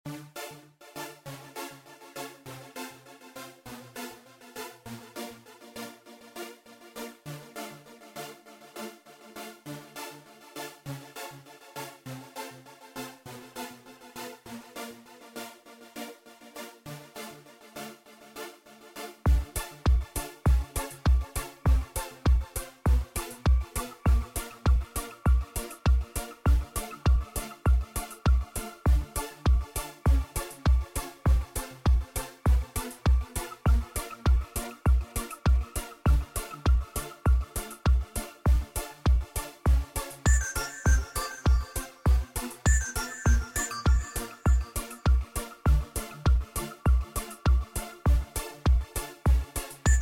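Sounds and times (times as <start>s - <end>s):
energetic dance music: 19.3s - 49.9s.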